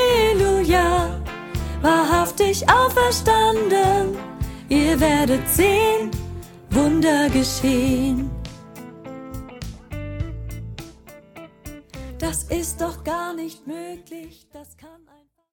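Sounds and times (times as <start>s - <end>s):
soprano solo singing: 0.0s - 8.4s, 12.2s - 15.3s.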